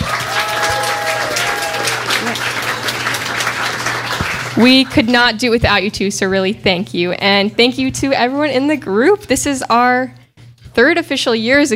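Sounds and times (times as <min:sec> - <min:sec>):
crowd clapping: 0:00.0 - 0:05.1
speech: 0:04.6 - 0:10.2, 0:10.8 - 0:11.7.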